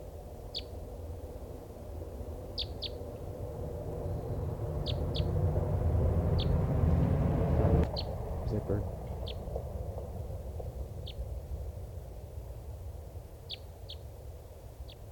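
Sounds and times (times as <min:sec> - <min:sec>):
low rumble: 0:01.6 - 0:13.5
type three bird flight calls: 0:04.2 - 0:05.4, 0:06.3 - 0:06.6, 0:07.9 - 0:09.5.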